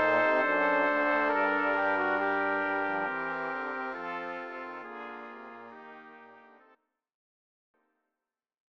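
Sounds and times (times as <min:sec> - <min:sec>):
brass quintet: 0:00.0 - 0:06.8.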